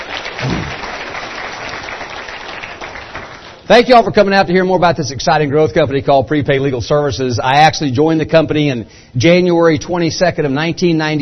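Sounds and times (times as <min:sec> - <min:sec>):
audience applause: 0:00.0 - 0:03.6
speech: 0:03.7 - 0:11.2.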